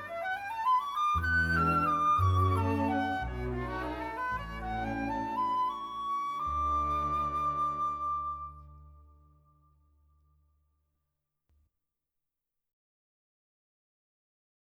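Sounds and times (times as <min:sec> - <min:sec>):
waltz music: 0:01.2 - 0:09.3.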